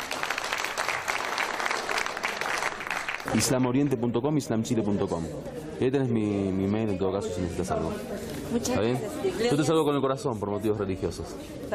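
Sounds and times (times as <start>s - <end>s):
audience applause: 0.0s - 3.6s
speech: 3.3s - 11.7s.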